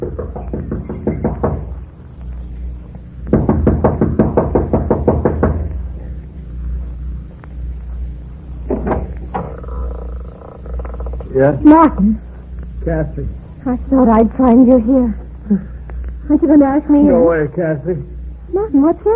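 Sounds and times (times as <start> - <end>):
impatient knocking on a wooden door: 0.0 - 1.8, 3.3 - 5.8, 8.7 - 9.5
speech: 11.4 - 12.2, 12.8 - 15.7, 16.3 - 19.1.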